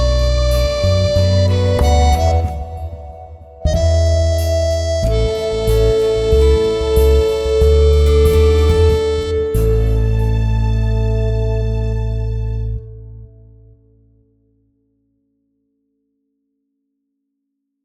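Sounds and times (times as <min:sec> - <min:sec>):
background music: 0:00.0 - 0:13.8.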